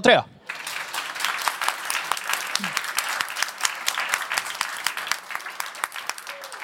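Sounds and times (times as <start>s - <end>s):
live audience applause: 0.4s - 6.6s.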